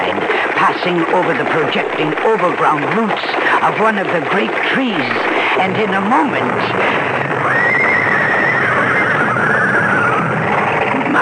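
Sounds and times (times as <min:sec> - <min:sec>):
speech: 0:00.7 - 0:08.0
panicked horse neighing: 0:07.2 - 0:11.1.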